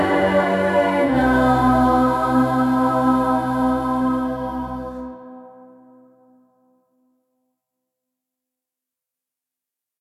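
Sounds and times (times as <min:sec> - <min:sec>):
choir singing: 0:00.0 - 0:05.9.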